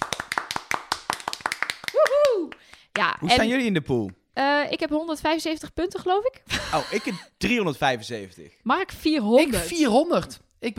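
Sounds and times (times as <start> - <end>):
scattered clapping: 0.0 - 3.1
vocal whoop: 1.9 - 2.6
speech: 2.4 - 10.7
laughter: 6.5 - 7.3.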